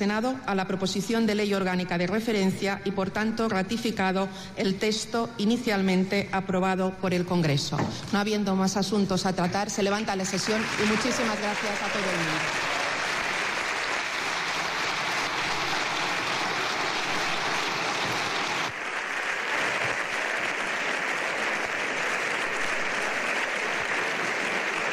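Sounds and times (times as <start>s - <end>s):
speech: 0.0s - 12.6s
parliament applause with members standing in the Congreso de los Diputados: 10.1s - 24.9s.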